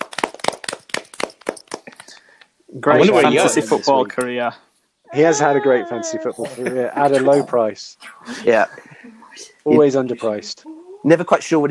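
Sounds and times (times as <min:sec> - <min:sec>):
hand clapping: 0:00.0 - 0:04.4, 0:05.8 - 0:07.6
speech: 0:02.7 - 0:11.6
laughter: 0:02.8 - 0:04.4, 0:05.2 - 0:09.2.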